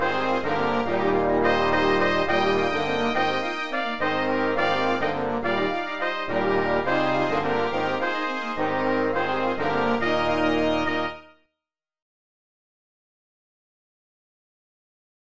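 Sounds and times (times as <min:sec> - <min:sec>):
house party: 0:00.0 - 0:11.2.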